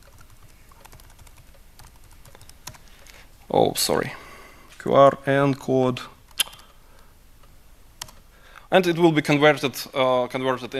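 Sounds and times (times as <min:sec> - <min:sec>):
typing on a computer keyboard: 0:00.0 - 0:02.8
speech: 0:03.5 - 0:04.2, 0:04.8 - 0:06.2, 0:08.7 - 0:10.7.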